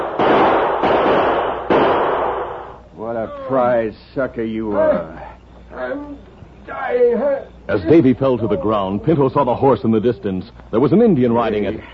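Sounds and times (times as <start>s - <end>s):
gunshots fired at close range: 0.0s - 2.8s
speech: 3.4s - 11.9s.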